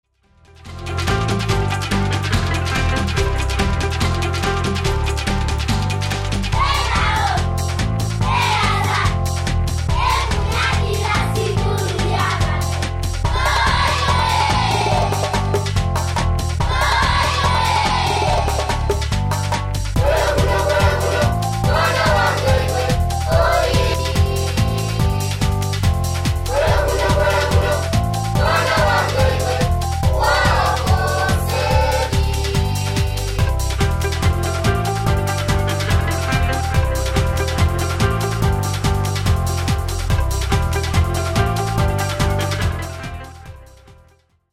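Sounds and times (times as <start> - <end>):
African beach music: 0.4 - 44.0.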